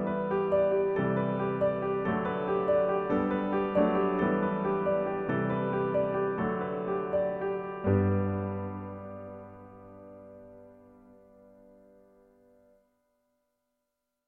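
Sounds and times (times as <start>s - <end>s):
beautiful lyrical instrumental music: 0.0s - 11.1s.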